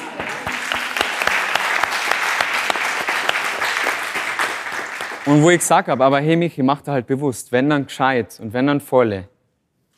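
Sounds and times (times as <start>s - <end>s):
audience applause: 0.0s - 5.7s
speech: 5.3s - 9.3s.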